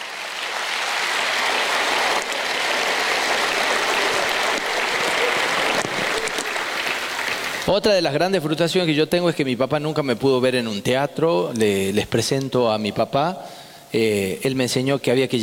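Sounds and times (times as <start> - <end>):
large audience applause: 0.0 - 7.7
speech: 7.7 - 15.4.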